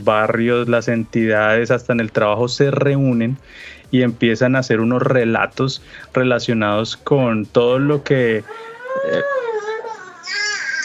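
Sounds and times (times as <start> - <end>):
speech: 0.0 - 9.4
newborn baby crying: 8.4 - 10.8.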